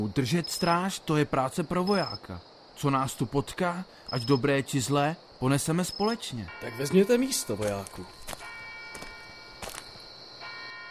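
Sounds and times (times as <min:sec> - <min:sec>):
speech: 0:00.1 - 0:08.4
clock striking midnight: 0:06.5 - 0:09.6.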